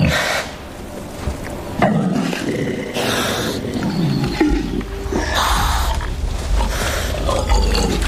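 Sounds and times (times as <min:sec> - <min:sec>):
male wild boars roaring and grunting while fighting: 0:01.8 - 0:08.0.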